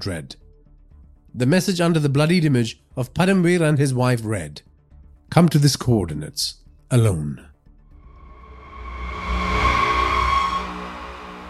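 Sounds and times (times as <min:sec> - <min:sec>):
speech: 0:00.0 - 0:00.4, 0:01.3 - 0:04.7, 0:05.3 - 0:07.5
car engine accelerating down a highway: 0:08.1 - 0:11.4.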